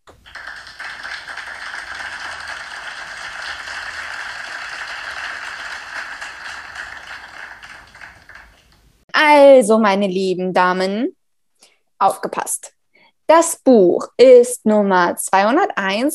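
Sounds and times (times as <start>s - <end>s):
crowd applauding: 0.0s - 8.8s
speech: 9.4s - 11.2s, 12.0s - 16.1s.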